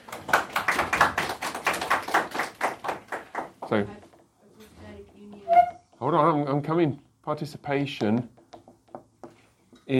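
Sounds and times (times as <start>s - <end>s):
audience applause: 0.0s - 3.6s
speech: 3.7s - 4.0s, 6.0s - 8.4s.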